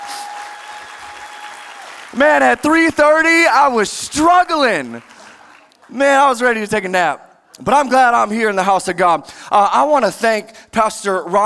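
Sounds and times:
audience applause: 0.0s - 6.0s
speech: 2.1s - 5.1s, 5.9s - 11.4s.

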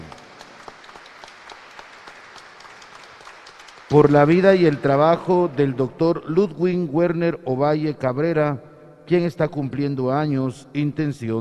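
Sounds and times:
audience applause: 0.0s - 5.8s
speech: 3.9s - 11.3s.

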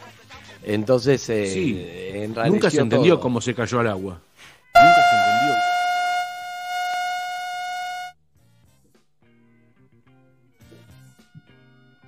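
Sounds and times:
speech: 0.6s - 5.7s
buzzer signal going off: 4.8s - 8.1s.

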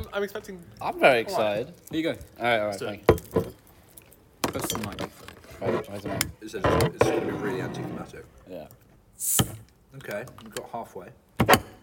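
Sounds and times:
speech: 0.0s - 3.6s, 4.5s - 11.7s
glassy clinking of a soda bottle: 2.9s - 5.3s
bottle of Melba's Fixins carrot cake soda cracked open with hiss: 9.2s - 9.6s.

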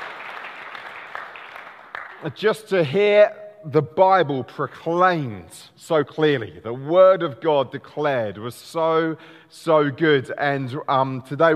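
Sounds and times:
audience applauding: 0.0s - 2.4s
speech: 2.2s - 11.5s.

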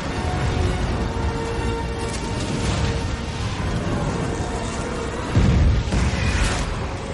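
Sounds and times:
catapults launching flaming balls: 0.0s - 7.1s
deep heavy boom: 5.3s - 6.4s.

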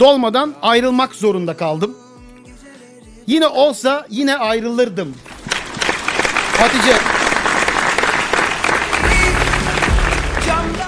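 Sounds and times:
speech: 0.0s - 2.0s, 3.3s - 5.3s, 6.6s - 7.2s
applause: 5.2s - 10.8s.

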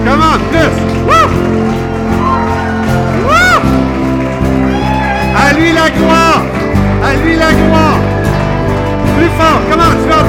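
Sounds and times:
audience clapping and cheering: 0.0s - 10.2s
low sustained music: 0.0s - 10.2s
person whooping: 2.1s - 3.8s, 4.6s - 5.4s
speech: 9.2s - 10.2s.

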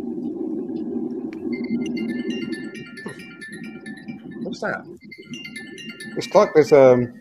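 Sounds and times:
wind chimes ringing: 1.6s - 7.1s
speech: 4.6s - 5.4s, 6.1s - 7.1s.

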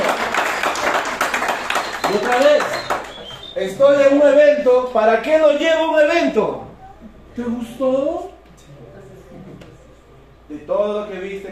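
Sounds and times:
audience applause: 0.0s - 3.5s
speech: 3.6s - 6.6s, 7.4s - 8.3s, 10.5s - 11.5s.

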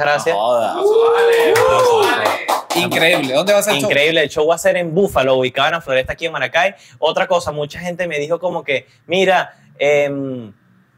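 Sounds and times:
speech: 0.0s - 10.6s
people whooping and cheering: 0.2s - 2.6s
applause: 1.2s - 3.8s.

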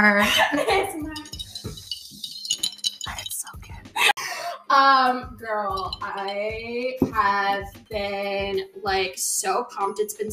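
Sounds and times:
speech: 0.0s - 1.2s, 4.7s - 10.3s
glasses clinking in a toast: 1.0s - 3.8s, 5.7s - 6.4s.

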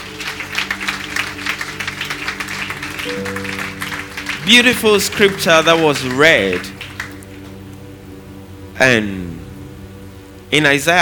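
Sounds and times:
audience clapping hands in appreciation: 0.0s - 7.8s
low sustained musical tone: 0.0s - 11.0s
speech: 4.5s - 6.8s, 8.8s - 9.3s, 10.5s - 11.0s.

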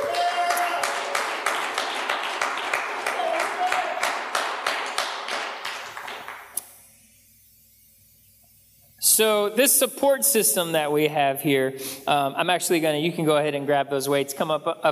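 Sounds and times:
audience applause: 0.0s - 6.6s
speech: 9.2s - 14.8s.

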